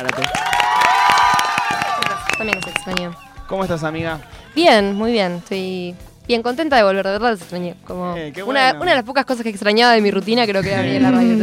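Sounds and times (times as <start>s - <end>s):
speech: 0.0s - 0.6s, 2.4s - 11.4s
small audience clapping and cheering: 0.0s - 4.6s.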